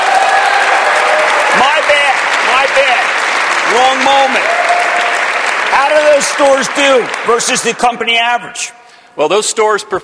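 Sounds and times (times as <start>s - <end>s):
studio audience cheering and whooping: 0.0s - 3.0s, 3.6s - 6.2s
studio audience applause: 0.0s - 8.1s
speech: 3.8s - 4.6s, 5.8s - 10.0s.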